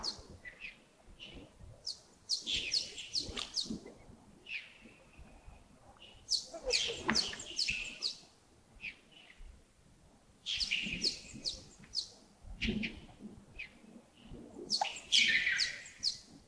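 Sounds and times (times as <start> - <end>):
birds chirping: 1.3 - 3.8, 6.0 - 8.2, 10.5 - 12.1, 14.7 - 16.2.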